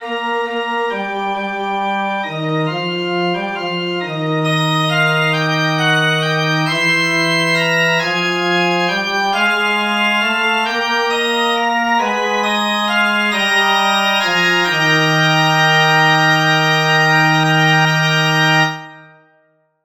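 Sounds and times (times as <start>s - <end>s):
musical prelude: 0.0s - 19.5s.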